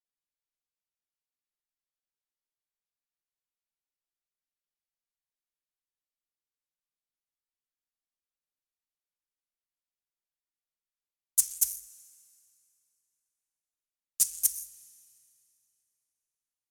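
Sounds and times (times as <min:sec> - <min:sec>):
shaker: 0:11.4 - 0:12.6, 0:14.2 - 0:15.7.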